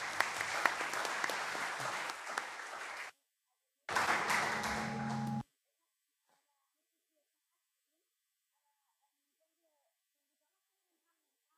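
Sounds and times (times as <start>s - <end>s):
applause: 0.0s - 3.2s, 3.9s - 5.4s.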